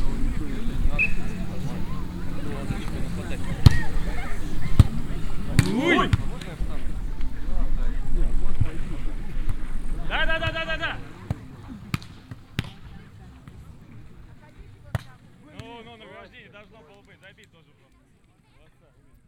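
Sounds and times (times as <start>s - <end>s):
volleyball game: 0.2s - 7.4s, 8.4s - 16.3s.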